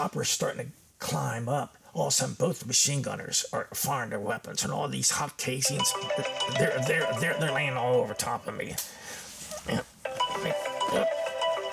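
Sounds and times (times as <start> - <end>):
speech: 0.0 - 9.0, 9.6 - 9.9
mobile phone ringing: 5.6 - 8.5, 10.1 - 11.7.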